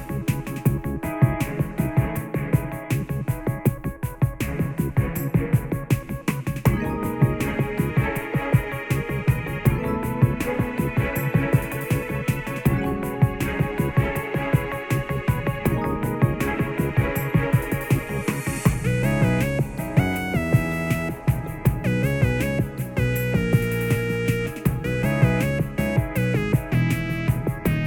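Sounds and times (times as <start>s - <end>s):
low filtered sneaking background music: 0.0s - 27.8s.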